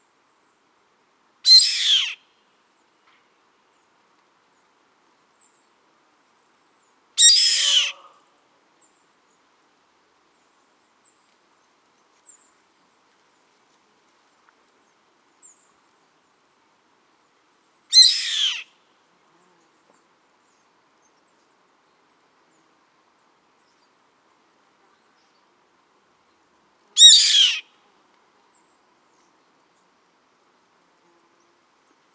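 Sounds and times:
bird screeching: 1.5s - 2.2s, 7.2s - 8.0s, 17.9s - 18.6s, 27.0s - 27.6s.

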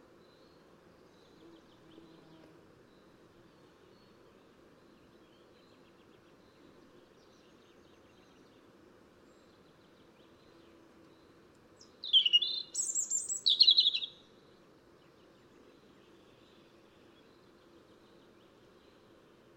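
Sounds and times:
European robin (Erithacus rubecula) song with high warbled phrases: 12.0s - 14.2s.

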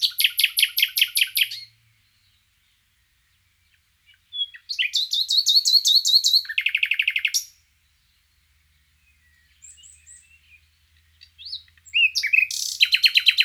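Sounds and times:
common nightingale Luscinia megarhynchos song: 0.0s - 13.4s.

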